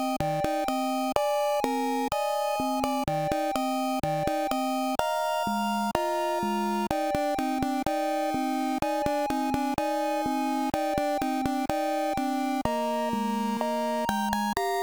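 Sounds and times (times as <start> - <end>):
slow melancholic C64 style music with refrain: 0.0 - 14.8.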